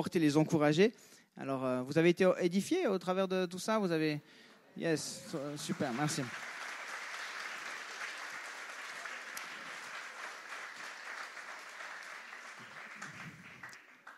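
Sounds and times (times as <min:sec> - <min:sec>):
speech: 0:00.0 - 0:06.5
audience applause: 0:05.0 - 0:14.1.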